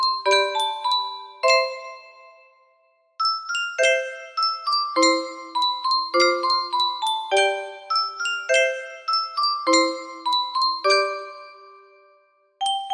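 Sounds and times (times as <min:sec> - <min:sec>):
music box melody: 0:00.0 - 0:02.6, 0:03.2 - 0:12.9.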